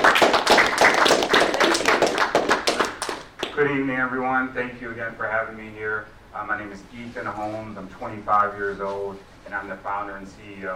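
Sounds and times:
audience applause welcoming a speaker at a college entrepreneurship event: 0.0s - 3.5s
speech: 3.6s - 10.7s.

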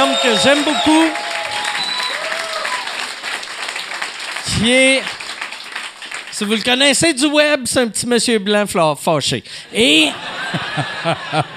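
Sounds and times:
faint whistles and cheers: 0.0s - 3.1s
audience applause: 0.0s - 6.9s
speech: 0.3s - 1.3s, 4.6s - 5.2s, 6.4s - 11.5s
laughter: 10.0s - 11.5s.

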